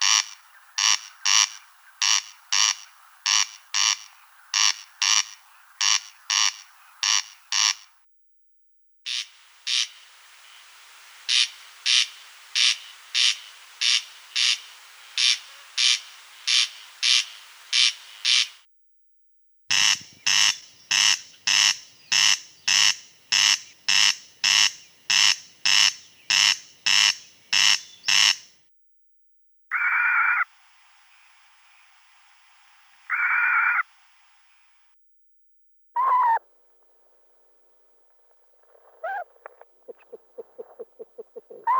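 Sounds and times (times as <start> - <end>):
corncrake calling: 0.0 - 8.0, 9.1 - 18.6, 19.7 - 28.6, 29.7 - 30.5, 33.0 - 33.9, 36.0 - 36.4, 38.6 - 41.7.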